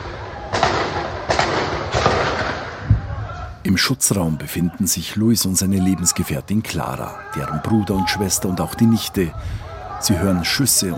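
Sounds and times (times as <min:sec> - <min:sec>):
rockets: 0:00.0 - 0:03.4
speech: 0:03.6 - 0:10.9.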